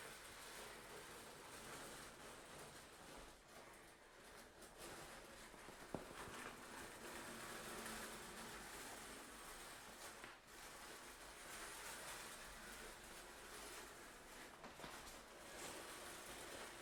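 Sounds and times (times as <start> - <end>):
shower curtain being pulled: 0.0 - 16.7.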